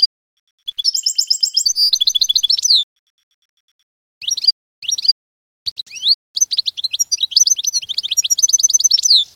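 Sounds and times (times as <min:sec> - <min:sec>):
canary singing trills: 0:00.7 - 0:02.9, 0:04.2 - 0:09.3.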